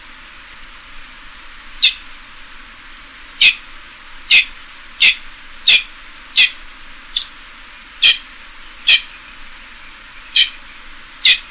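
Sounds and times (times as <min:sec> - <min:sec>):
pheasant giving harsh clucks: 0:04.3 - 0:06.6, 0:10.3 - 0:10.6, 0:11.2 - 0:11.4.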